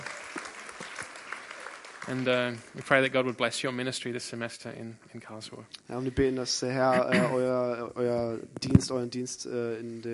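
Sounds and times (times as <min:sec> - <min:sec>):
audience clapping: 0:00.0 - 0:03.2
speech: 0:02.1 - 0:10.1.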